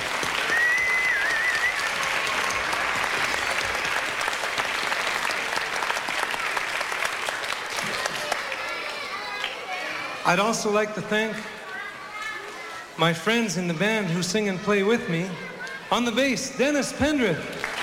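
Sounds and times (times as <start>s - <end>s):
audience applause at a live concert: 0.0s - 10.2s, 17.1s - 17.8s
crowd noise at a live concert: 0.0s - 17.8s
speech: 10.3s - 11.5s, 13.0s - 17.6s.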